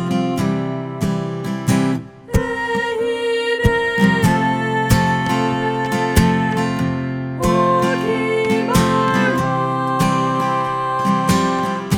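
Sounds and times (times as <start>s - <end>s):
soprano singing: 0.0s - 11.9s.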